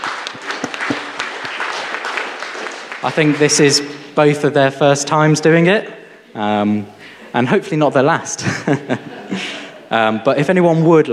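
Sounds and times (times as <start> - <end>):
audience applause: 0.0 - 3.8
speech: 3.0 - 11.1
laughter: 8.3 - 10.1.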